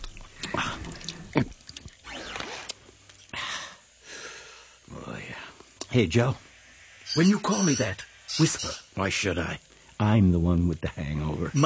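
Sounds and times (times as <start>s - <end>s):
martini drizzling from a liquor spigot: 0.0s - 3.4s
speech: 6.0s - 6.4s, 7.1s - 11.6s.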